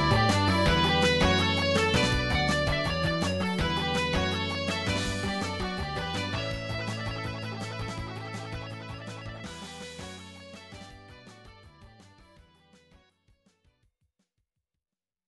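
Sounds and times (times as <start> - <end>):
hard hitting title screen remix: 0.0 - 10.9.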